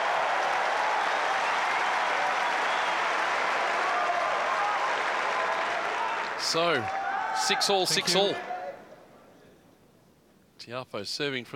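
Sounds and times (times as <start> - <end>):
tennis crowd applauding: 0.0 - 8.6
speech: 6.4 - 8.5, 10.6 - 11.5.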